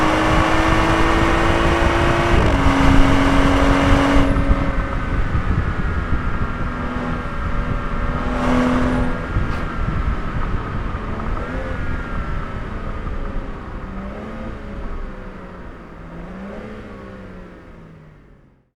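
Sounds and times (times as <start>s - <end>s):
BMW 335i M Sport car engine: 0.0s - 18.7s.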